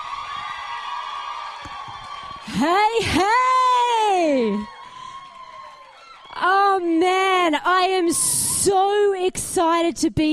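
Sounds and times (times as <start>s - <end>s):
crowd cheering and whooping: 0.0s - 6.9s
speech: 2.5s - 3.5s, 6.8s - 10.3s.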